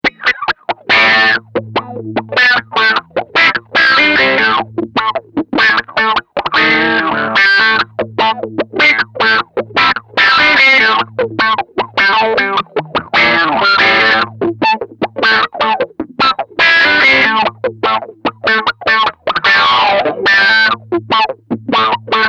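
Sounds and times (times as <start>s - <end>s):
electric guitar on neck pickup: 0.0s - 22.2s.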